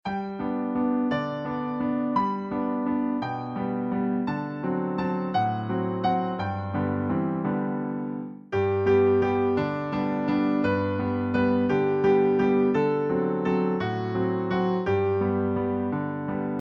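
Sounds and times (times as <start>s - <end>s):
instrumental nursery rhyme: 0.1s - 15.9s.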